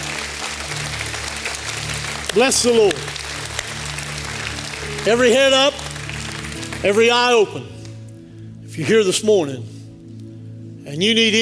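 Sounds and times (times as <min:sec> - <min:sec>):
audience hand clapping in praise: 0:00.0 - 0:08.0
speech: 0:02.3 - 0:03.0, 0:05.0 - 0:05.8, 0:06.8 - 0:07.7, 0:08.8 - 0:09.7, 0:10.9 - 0:11.4.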